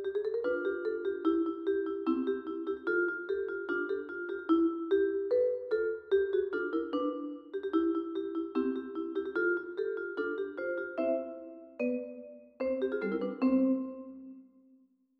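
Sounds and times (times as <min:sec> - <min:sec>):
march played on vibraphone: 0:00.0 - 0:14.4.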